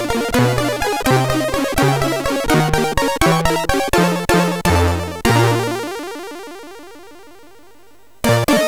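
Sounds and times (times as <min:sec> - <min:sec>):
moody chiptune music on MOS6581R2 SID chip: 0:00.0 - 0:08.6.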